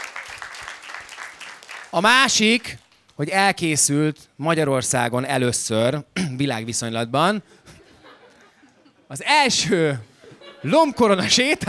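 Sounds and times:
applause: 0:00.0 - 0:03.2
speech: 0:01.9 - 0:07.6, 0:09.1 - 0:11.6
laughter: 0:07.7 - 0:09.1, 0:10.0 - 0:11.6.

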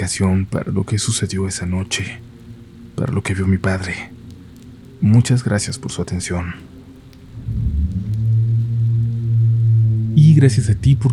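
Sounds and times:
speech: 0:00.0 - 0:02.4, 0:03.0 - 0:04.2, 0:05.0 - 0:06.7, 0:10.2 - 0:11.1
faint wash of rain: 0:00.0 - 0:11.1
deep steady rainstorm rumble: 0:07.1 - 0:11.1.

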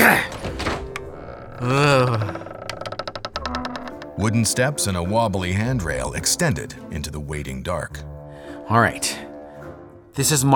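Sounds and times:
jammed door being forced open: 0:00.0 - 0:04.4
speech: 0:04.2 - 0:08.1, 0:08.7 - 0:09.2, 0:10.2 - 0:10.5.

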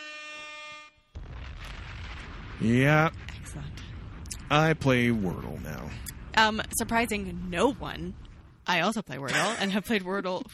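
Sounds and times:
air horn blast: 0:00.0 - 0:01.1
harsh rumbling burst of noise: 0:01.2 - 0:08.9
speech: 0:02.6 - 0:03.8, 0:04.5 - 0:10.5.

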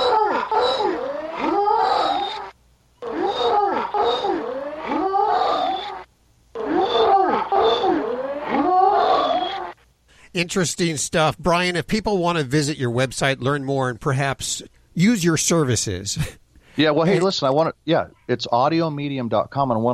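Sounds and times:
dog making long sliding moan-like vocal sounds: 0:00.0 - 0:09.8
speech: 0:10.4 - 0:19.9.

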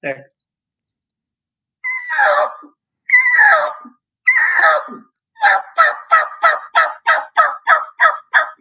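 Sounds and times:
raspy turkey call barked out: 0:02.1 - 0:08.5.

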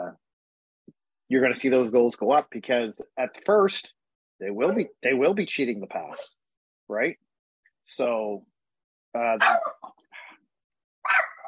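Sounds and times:
speech: 0:01.3 - 0:07.2, 0:07.8 - 0:08.5, 0:09.2 - 0:10.0
dog barking and yipping: 0:09.4 - 0:09.9, 0:11.0 - 0:11.4.

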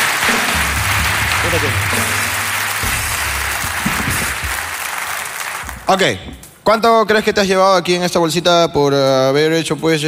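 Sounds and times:
crowd applause: 0:00.0 - 0:06.1
speech: 0:01.5 - 0:02.1, 0:05.9 - 0:10.0.

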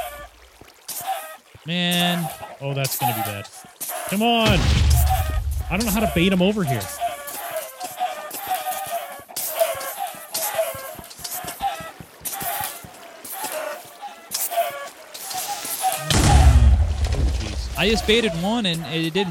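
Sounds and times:
chickens clucking: 0:00.0 - 0:19.2
speech: 0:01.6 - 0:04.9, 0:05.7 - 0:07.0, 0:17.8 - 0:19.2.

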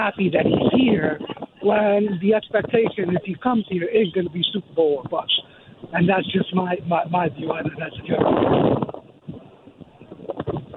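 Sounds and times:
speech: 0:00.0 - 0:08.9
wind noise on caller's phone line: 0:00.0 - 0:10.7.

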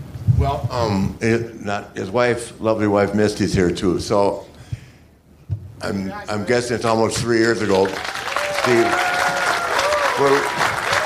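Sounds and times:
speech: 0:00.4 - 0:04.5, 0:05.8 - 0:09.1, 0:10.2 - 0:10.6
round of applause: 0:07.6 - 0:11.0.

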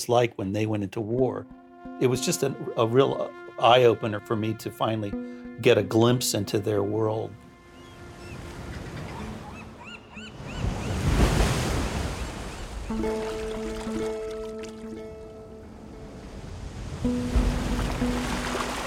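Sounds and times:
speech: 0:00.0 - 0:07.4
calm sea waves washing on a beach: 0:10.3 - 0:18.8.

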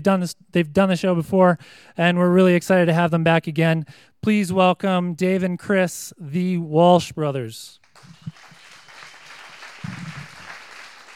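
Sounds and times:
speech: 0:00.0 - 0:07.8
audience applause: 0:07.8 - 0:11.1
crowd whooping: 0:07.9 - 0:11.1.

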